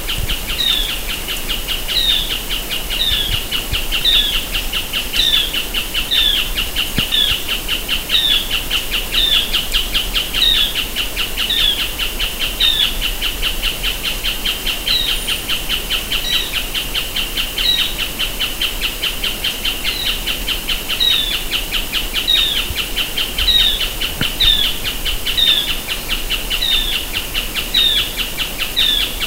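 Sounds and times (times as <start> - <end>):
bird calling: 0.0 - 29.2
heavy hiss: 0.0 - 29.2.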